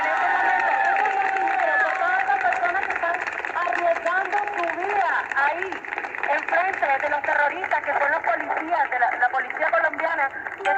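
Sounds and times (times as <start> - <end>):
large crowd cheering and shouting: 0.0 - 1.8
scattered clapping: 0.0 - 10.6.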